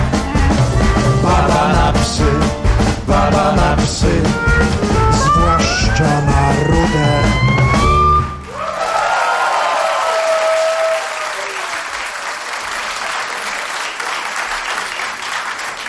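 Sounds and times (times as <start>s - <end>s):
song ending on a sustained note: 0.0s - 8.5s
whoops and shouts: 5.2s - 11.6s
audience applause: 7.6s - 15.8s.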